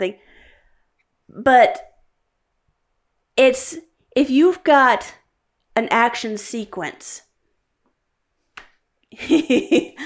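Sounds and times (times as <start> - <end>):
speech: 0.0 - 0.4, 1.3 - 1.9, 3.4 - 5.2, 5.8 - 7.3, 9.1 - 10.0
hand clap: 8.5 - 8.8.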